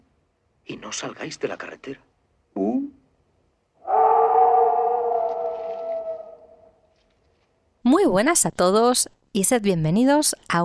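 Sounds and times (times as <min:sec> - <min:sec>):
speech: 0:00.8 - 0:03.0, 0:08.1 - 0:10.6
werewolf howls in film scene: 0:03.8 - 0:06.8.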